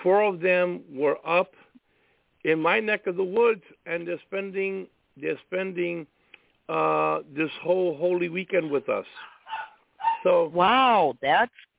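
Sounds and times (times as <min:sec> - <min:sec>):
speech: 0:00.0 - 0:01.6, 0:02.4 - 0:11.7
dog barking and yowling: 0:08.6 - 0:10.6.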